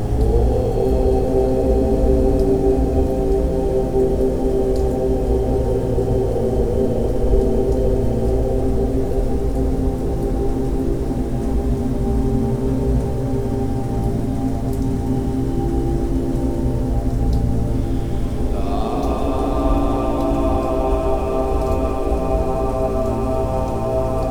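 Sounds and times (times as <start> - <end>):
om mantra chanting for meditation: 0.0 - 3.6, 17.7 - 24.2
rain: 0.0 - 24.2.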